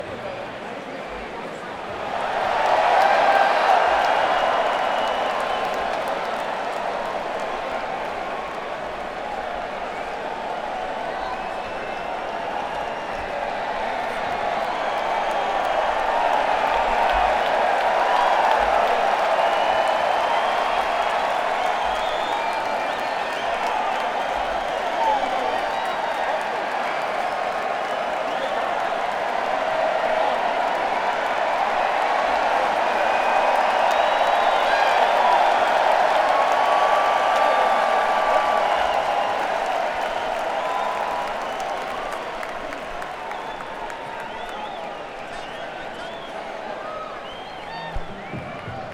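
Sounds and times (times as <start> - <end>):
crowd at Madison Square Garden: 0.0 - 48.9.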